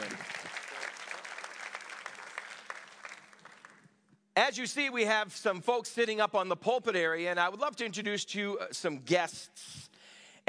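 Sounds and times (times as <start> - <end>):
audience applause: 0.0 - 3.8
speech: 4.4 - 9.8.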